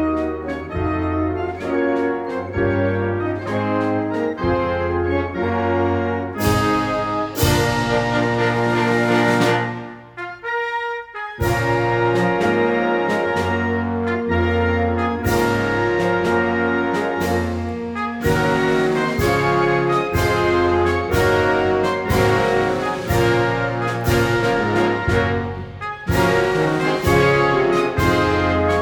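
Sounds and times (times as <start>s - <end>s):
navy band playing a national anthem: 0.0s - 28.8s.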